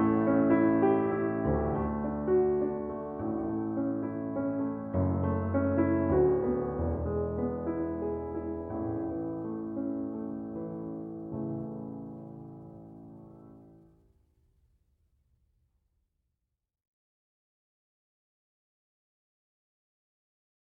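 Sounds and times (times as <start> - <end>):
piano hymn: 0.0 - 13.9.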